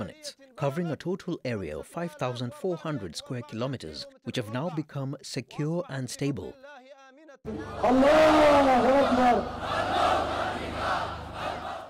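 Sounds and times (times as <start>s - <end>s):
speech: 0.0s - 6.8s, 7.4s - 11.1s
crowd chanting at a rally: 6.6s - 11.8s.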